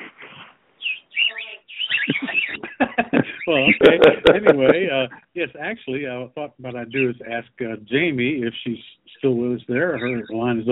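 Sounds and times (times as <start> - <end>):
bird chirping and warbling: 0.8 - 4.0, 6.7 - 7.4, 8.4 - 10.7
faint low murmur: 1.3 - 10.7
laughter: 1.9 - 10.7
speech: 3.0 - 10.7.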